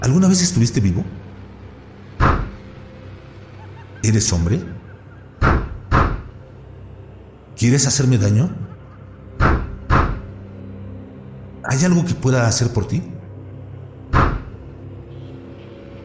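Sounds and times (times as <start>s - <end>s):
speech: 0.0s - 1.2s, 4.0s - 4.8s, 7.6s - 8.7s, 11.7s - 13.1s
laughter: 3.4s - 5.5s, 8.4s - 9.4s
knocking on a door: 9.4s - 10.3s, 14.1s - 14.5s.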